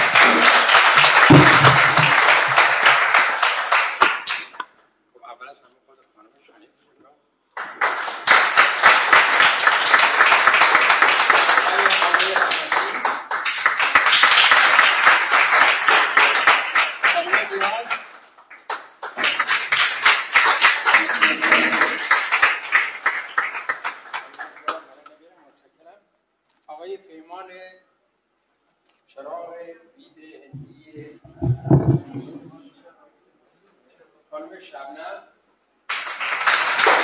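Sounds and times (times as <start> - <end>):
loud audience applause at an award ceremony: 0.0 - 4.6, 7.6 - 24.8, 35.9 - 37.0.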